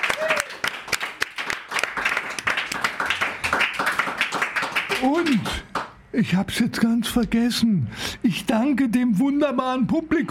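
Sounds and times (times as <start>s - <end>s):
audience applause: 0.0s - 5.9s
speech: 5.0s - 10.3s.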